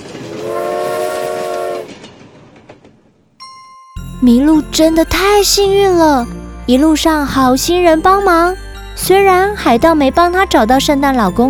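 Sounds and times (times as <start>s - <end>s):
train horn: 0.3s - 2.0s
speech: 4.2s - 11.4s.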